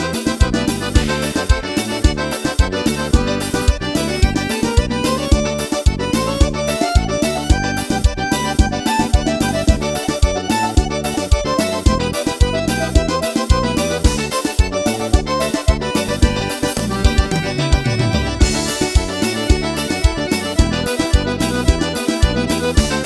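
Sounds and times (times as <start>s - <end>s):
forro instrumental music: 0.0s - 23.0s.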